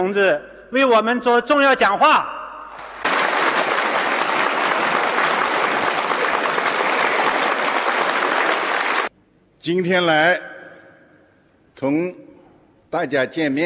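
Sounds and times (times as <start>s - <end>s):
speech: 0.0s - 2.4s, 9.6s - 10.5s, 11.8s - 12.3s, 12.9s - 13.6s
warm audience applause: 2.7s - 9.1s.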